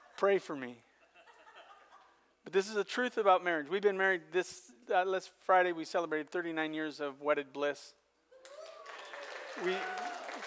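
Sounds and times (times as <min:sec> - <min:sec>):
speech: 0:00.2 - 0:00.9, 0:02.4 - 0:08.6, 0:09.6 - 0:10.4
soft audience clapping during a church sermon: 0:08.4 - 0:10.4.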